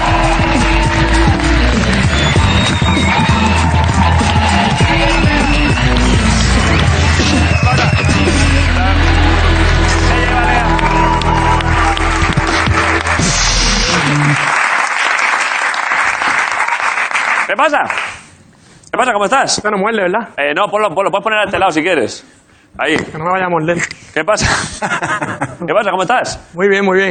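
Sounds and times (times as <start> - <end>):
music playing: 0.0 - 14.8
audience applause and cheering: 0.0 - 18.2
speech: 17.6 - 18.0, 19.0 - 27.0
laughter: 24.4 - 25.7.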